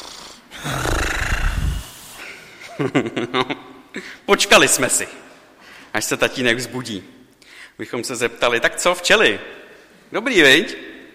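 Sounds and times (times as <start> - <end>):
person imitating a sleeping man's snoring: 0.0 - 2.1
speech: 2.8 - 5.2, 5.9 - 7.2, 7.8 - 10.9.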